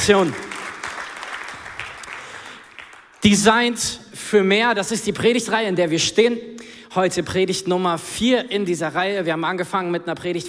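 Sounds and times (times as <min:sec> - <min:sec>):
speech: 0:00.0 - 0:00.5, 0:03.2 - 0:10.4
audience applause: 0:00.0 - 0:03.2.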